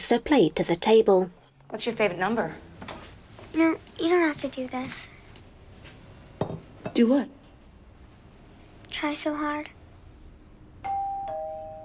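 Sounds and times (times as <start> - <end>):
speech: 0.1 - 2.9, 3.5 - 5.1, 7.0 - 7.4, 8.9 - 9.8
doorbell ringing with two chime tones: 10.8 - 11.8.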